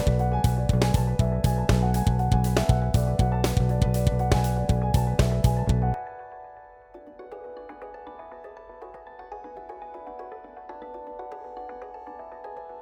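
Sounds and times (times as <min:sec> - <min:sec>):
rhythm backing track for practice: 0:00.0 - 0:06.0.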